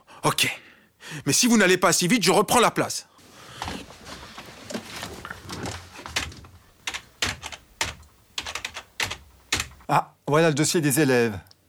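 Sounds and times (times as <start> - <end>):
speech: 0.2 - 3.1, 9.9 - 11.5
typing on a computer keyboard with two fingers: 6.8 - 9.8.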